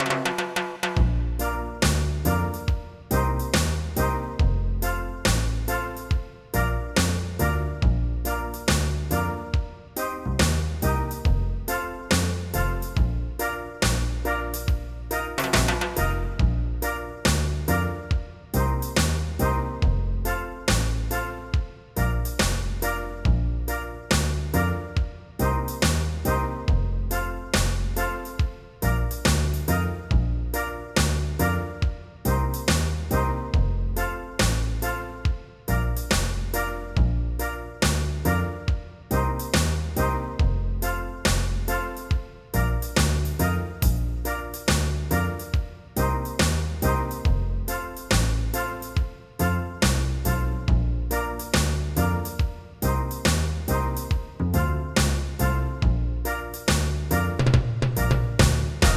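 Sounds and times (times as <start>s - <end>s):
reggae music: 0.0s - 58.9s.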